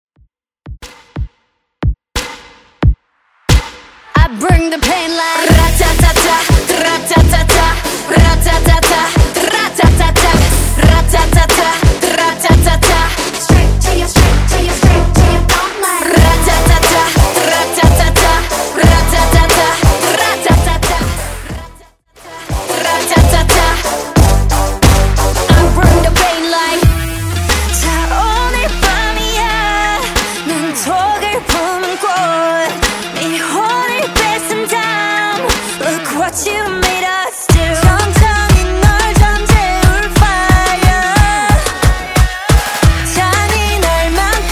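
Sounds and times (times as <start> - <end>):
K-pop music: 3.5 - 44.5.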